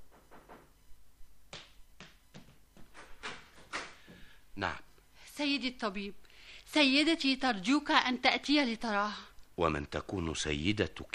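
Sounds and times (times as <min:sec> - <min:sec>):
knocking on a door: 0:00.0 - 0:00.8
speech: 0:04.6 - 0:04.8, 0:05.4 - 0:11.1.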